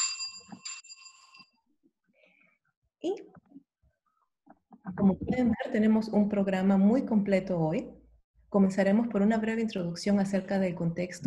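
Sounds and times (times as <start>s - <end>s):
bell rung as a presentation time signal: 0.0s - 1.6s
speech: 3.0s - 3.4s, 5.0s - 11.2s.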